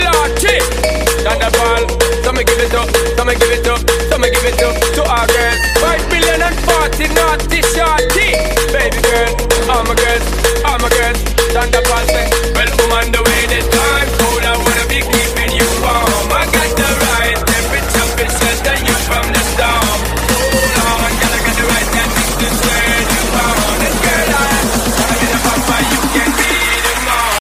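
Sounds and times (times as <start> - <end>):
bass ringtone: 0.0 - 27.3.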